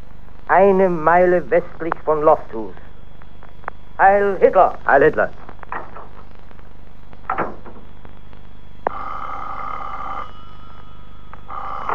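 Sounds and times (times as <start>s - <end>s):
low hum: 0.0s - 11.9s
speech: 0.5s - 2.8s, 4.0s - 5.4s
telephone ringing: 8.8s - 11.9s.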